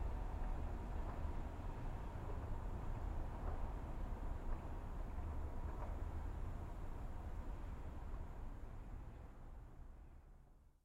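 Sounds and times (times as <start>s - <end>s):
tram: 0.0s - 10.2s.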